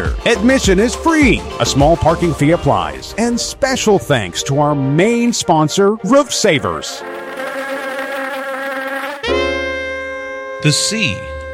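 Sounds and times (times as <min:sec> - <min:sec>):
speech: 0:00.2 - 0:07.2, 0:10.6 - 0:11.5
bee buzzing: 0:06.6 - 0:11.5.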